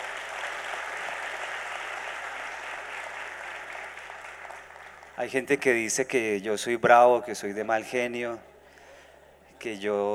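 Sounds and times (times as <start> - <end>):
audience applause: 0.0 - 5.2
speech: 5.2 - 8.5, 9.6 - 10.1.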